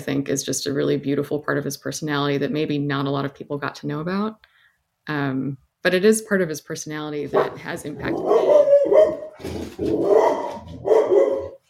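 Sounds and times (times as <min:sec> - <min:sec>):
speech: 0:00.0 - 0:08.6
female dog barking: 0:07.3 - 0:11.6.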